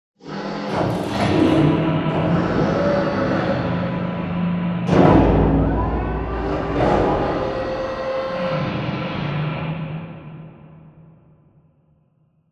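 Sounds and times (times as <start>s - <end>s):
distant assembly wall arm: 0.7s - 8.9s.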